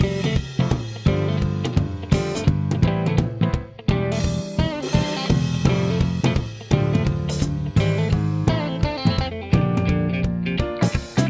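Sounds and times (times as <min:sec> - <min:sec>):
guitar: 0:00.0 - 0:11.2.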